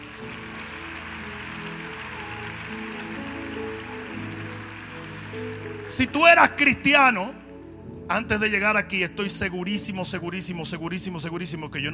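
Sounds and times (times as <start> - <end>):
audience applauding: 0.0 - 6.9
speech: 5.9 - 7.4, 8.1 - 11.9.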